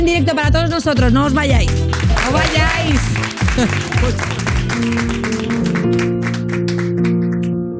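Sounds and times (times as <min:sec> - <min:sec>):
speech: 0:00.1 - 0:06.1
audience applause: 0:01.7 - 0:07.6
laughter: 0:02.1 - 0:05.8.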